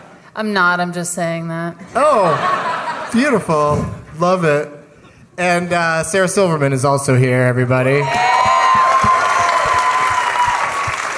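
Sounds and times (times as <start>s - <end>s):
speech: 0.4s - 4.8s, 5.4s - 8.4s
laughter: 1.9s - 3.7s
large audience applause: 8.0s - 11.1s.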